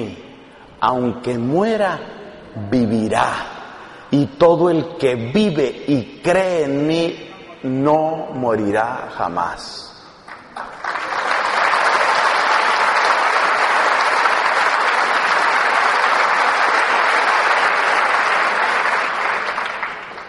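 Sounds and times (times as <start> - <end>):
speech: 0.0 - 3.5, 4.1 - 9.9
audience applause: 10.3 - 20.2.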